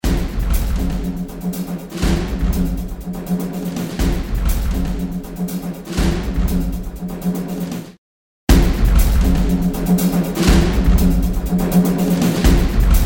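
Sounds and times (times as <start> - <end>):
music loop: 0.0 - 7.9, 8.5 - 13.0.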